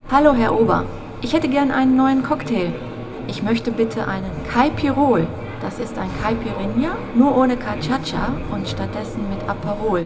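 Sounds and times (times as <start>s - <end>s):
cafeteria ambience: 0.0s - 10.0s.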